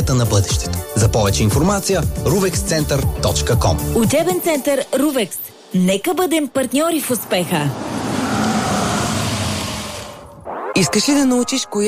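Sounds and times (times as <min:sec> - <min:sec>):
speech: 0:00.1 - 0:08.0, 0:10.8 - 0:11.8
car internal combustion engine running: 0:07.6 - 0:10.4.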